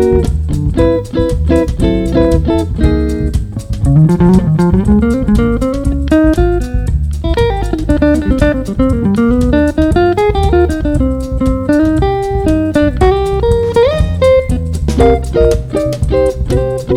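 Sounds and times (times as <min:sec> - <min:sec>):
samba quartet with cabasa: 0:00.0 - 0:16.9.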